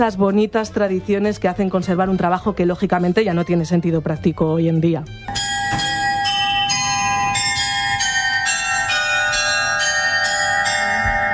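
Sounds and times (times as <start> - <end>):
speech: 0.0 - 5.4
bells of the medieval astronomical clock inside Münster Cathedral: 5.3 - 11.3.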